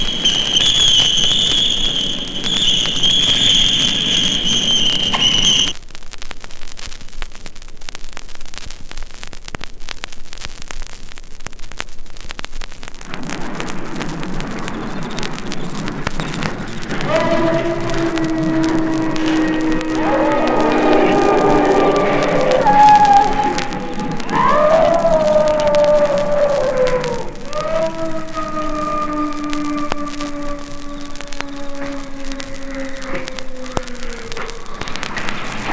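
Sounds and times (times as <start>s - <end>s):
storm at night: 0.0s - 5.8s, 13.0s - 35.7s.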